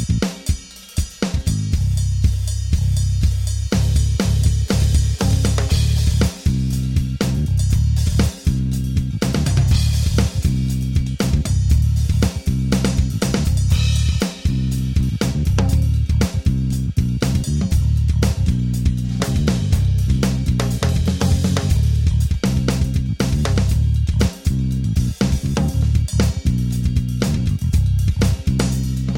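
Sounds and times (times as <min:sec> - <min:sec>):
backing music: 0:00.0 - 0:29.1.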